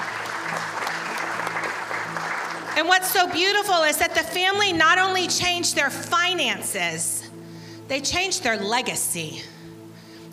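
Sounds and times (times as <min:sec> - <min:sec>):
audience applause: 0:00.0 - 0:02.9
speech: 0:02.8 - 0:07.2, 0:07.9 - 0:09.6.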